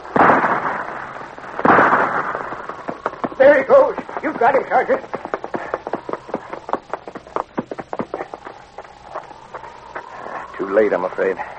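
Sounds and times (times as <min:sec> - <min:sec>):
gunshots fired by a sergeant at an attacking bear: 0:00.0 - 0:05.6
speech: 0:03.4 - 0:05.2, 0:10.7 - 0:11.5.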